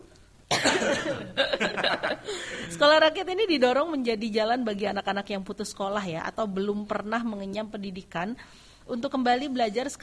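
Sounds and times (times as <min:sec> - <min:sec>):
person coughing: 0:00.5 - 0:01.7
laughter: 0:01.0 - 0:02.7
speech: 0:01.0 - 0:10.0.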